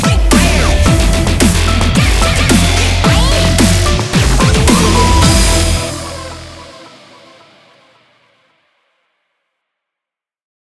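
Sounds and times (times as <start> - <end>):
brutal dubstep logo sound: 0.0 - 7.6.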